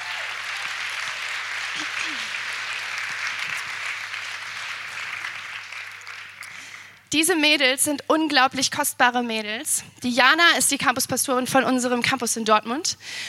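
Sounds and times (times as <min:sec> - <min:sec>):
faint voices and cheers: 0:00.0 - 0:02.6
audience applause: 0:00.0 - 0:07.1
speech: 0:01.8 - 0:02.4, 0:07.1 - 0:13.2.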